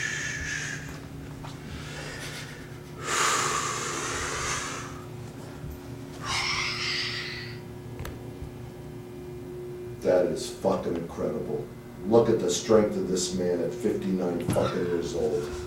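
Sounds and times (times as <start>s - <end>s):
yoga breathing exercises: 0.0s - 1.0s, 1.6s - 5.1s
low hum: 0.0s - 15.6s
speech: 10.1s - 15.6s.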